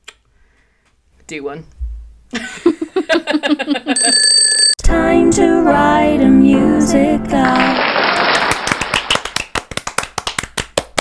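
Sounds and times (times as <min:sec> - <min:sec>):
speech: 0:01.3 - 0:02.6, 0:03.5 - 0:07.8
laughter: 0:02.3 - 0:04.1
applause: 0:07.5 - 0:10.9.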